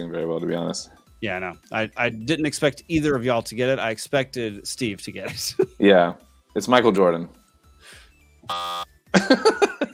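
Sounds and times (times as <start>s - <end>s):
speech: 0.0s - 9.7s
game-show buzzer: 8.5s - 8.9s
laughter: 9.2s - 9.9s.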